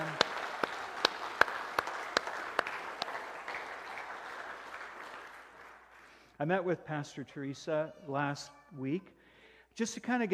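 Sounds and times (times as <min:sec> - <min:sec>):
audience applause: 0:00.0 - 0:06.2
speech: 0:06.4 - 0:09.2, 0:09.8 - 0:10.3.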